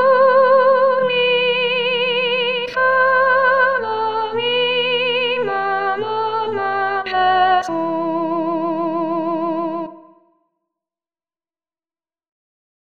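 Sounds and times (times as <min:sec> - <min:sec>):
sopranos singing: 0:00.0 - 0:10.1.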